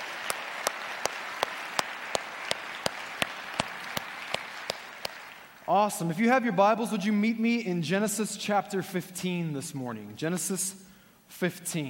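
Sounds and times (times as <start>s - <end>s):
sharp evenly spaced claps at a church service: 0.0s - 5.7s
speech: 5.7s - 11.8s.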